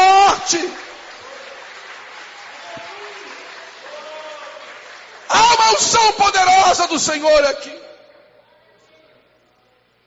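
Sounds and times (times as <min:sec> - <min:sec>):
audience applause: 0:00.0 - 0:06.9
speech: 0:05.8 - 0:07.8.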